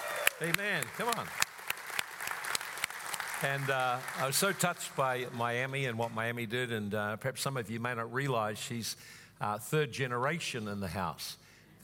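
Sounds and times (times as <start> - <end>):
audience applauding: 0.0 - 6.0
speech: 0.4 - 1.5, 3.4 - 11.8.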